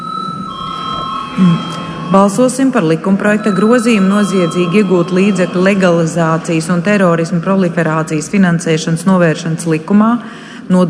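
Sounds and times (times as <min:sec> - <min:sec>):
parliament chamber bell ringing: 0:00.0 - 0:07.3
speech: 0:01.4 - 0:10.8.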